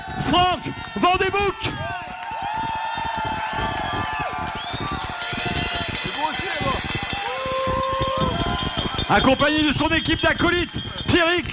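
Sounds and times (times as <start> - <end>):
crowd cheering and whooping: 0.0 - 11.1
speech: 0.3 - 2.0, 9.1 - 11.5
audience applauding: 0.6 - 9.1.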